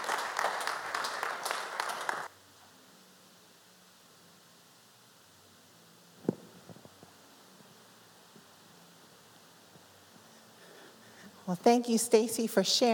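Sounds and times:
audience applause: 0:00.0 - 0:02.3
speech: 0:11.5 - 0:12.9.

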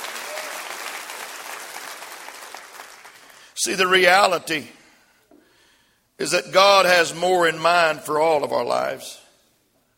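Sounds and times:
audience clapping hands: 0:00.0 - 0:03.6
speech: 0:03.6 - 0:04.8, 0:06.2 - 0:09.2.

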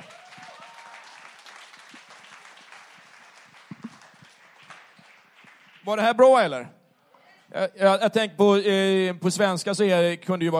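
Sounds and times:
audience applause: 0:00.0 - 0:06.0
speech: 0:05.8 - 0:06.8, 0:07.6 - 0:10.5.

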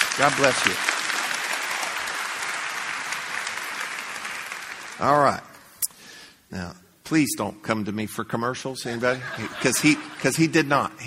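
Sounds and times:
audience applause: 0:00.0 - 0:05.2
speech: 0:00.2 - 0:00.9, 0:05.0 - 0:05.5, 0:06.5 - 0:11.0
laughter: 0:08.9 - 0:10.7.

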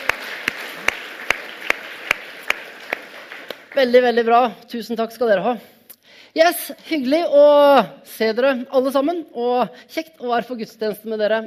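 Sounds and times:
sharp claps: 0:00.0 - 0:04.0
speech: 0:03.8 - 0:11.4.

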